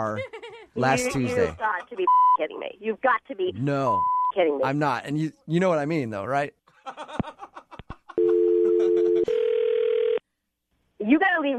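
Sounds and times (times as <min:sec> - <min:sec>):
speech: 0:00.0 - 0:07.2, 0:11.0 - 0:11.5
telephone dial tone after call disconnects: 0:08.2 - 0:10.2.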